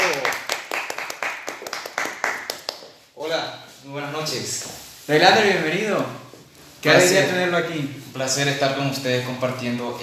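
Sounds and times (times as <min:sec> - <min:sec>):
audience applause: 0:00.0 - 0:02.8
speech: 0:04.2 - 0:06.2, 0:06.8 - 0:10.0.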